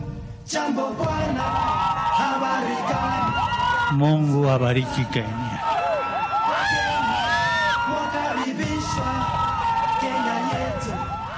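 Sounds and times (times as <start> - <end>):
big crowd cheering and singing in welcome: 0.0 - 11.3
speech: 0.5 - 5.6
high whoops: 1.3 - 4.0, 5.4 - 11.3.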